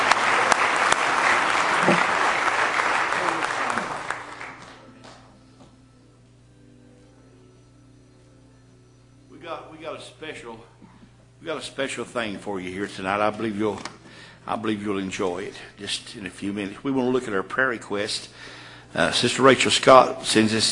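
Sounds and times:
audience clapping: 0.0s - 5.3s
speech: 11.4s - 20.7s.

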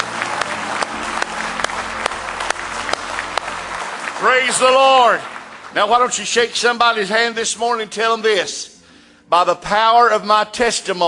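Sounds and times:
audience clapping: 0.0s - 7.6s
speech: 4.2s - 8.7s, 9.3s - 11.0s.

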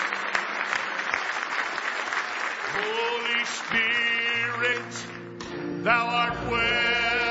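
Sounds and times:
audience hand clapping: 0.0s - 5.3s
speech: 2.8s - 7.2s.

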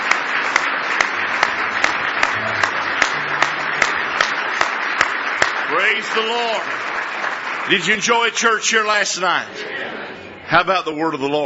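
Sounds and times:
audience clapping hands: 0.0s - 9.8s
faint low murmur: 1.0s - 6.9s
speech: 5.8s - 6.9s, 7.7s - 11.4s.

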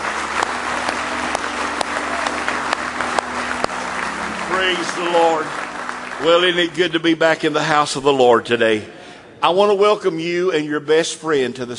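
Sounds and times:
audience clapping hands: 0.0s - 8.2s
speech: 4.6s - 5.6s, 6.2s - 11.7s.

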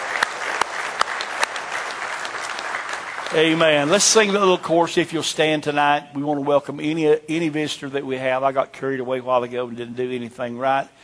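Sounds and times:
church congregation applauding its ministers: 0.0s - 4.9s
speech: 3.3s - 11.0s.

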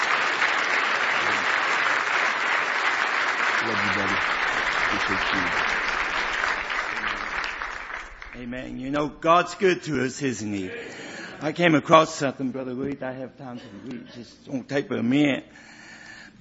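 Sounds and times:
audience clapping: 0.0s - 9.7s
speech: 3.6s - 6.0s, 8.4s - 15.8s.

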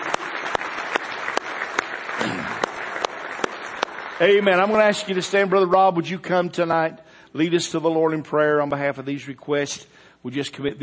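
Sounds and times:
audience clapping hands in praise: 0.0s - 5.7s
speech: 4.2s - 10.8s.

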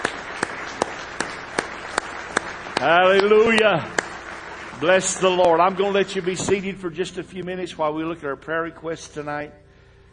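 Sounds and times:
audience hand clapping: 0.0s - 7.2s
speech: 2.8s - 4.0s, 4.8s - 9.6s.

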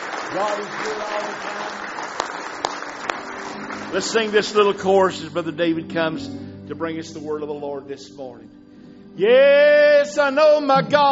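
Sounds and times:
audience hand clapping: 0.0s - 5.4s
speech: 0.3s - 8.6s, 9.2s - 11.1s.

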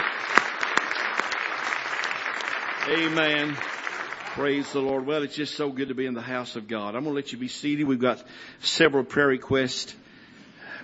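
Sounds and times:
church congregation clapping hands in praise: 0.0s - 5.2s
speech: 2.9s - 3.8s, 4.4s - 10.0s.

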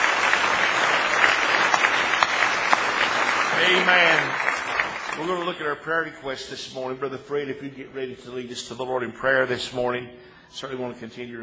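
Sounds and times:
audience clapping: 0.0s - 5.7s
speech: 3.6s - 4.4s, 5.2s - 11.4s.

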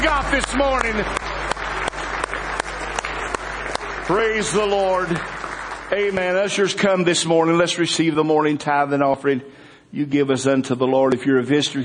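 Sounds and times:
speech: 0.0s - 1.3s, 4.1s - 11.8s
church congregation clapping hands in praise: 0.0s - 8.1s.

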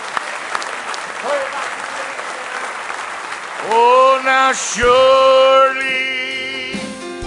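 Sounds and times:
audience hand clapping in praise: 0.0s - 5.6s
speech: 4.5s - 6.2s.

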